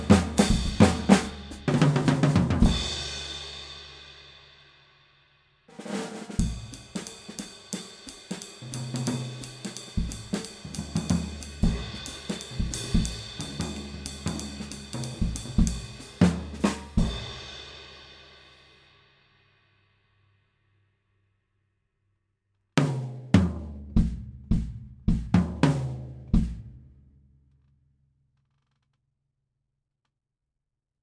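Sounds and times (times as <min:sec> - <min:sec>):
Ludwig Downbeat drum: 0:00.0 - 0:03.7, 0:05.7 - 0:18.0, 0:22.8 - 0:26.8.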